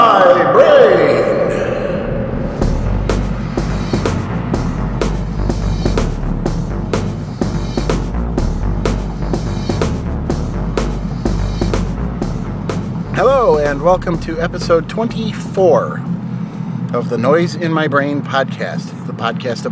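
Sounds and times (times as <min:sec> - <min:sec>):
road noise from inside a car driving down the road: 0:00.0 - 0:19.7
sharp ticks and knocks: 0:02.7 - 0:17.0
speech: 0:13.9 - 0:16.1, 0:16.9 - 0:19.7.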